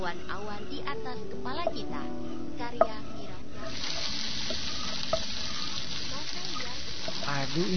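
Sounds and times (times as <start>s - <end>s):
speech: 0.1s - 3.1s, 7.5s - 7.7s
food frying and stirred in a pan: 3.6s - 7.7s.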